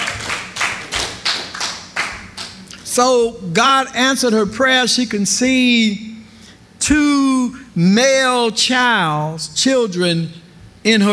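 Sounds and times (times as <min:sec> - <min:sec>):
church congregation clapping in praise during a sermon: 0:00.0 - 0:02.8
speech: 0:03.0 - 0:06.1, 0:06.8 - 0:11.1.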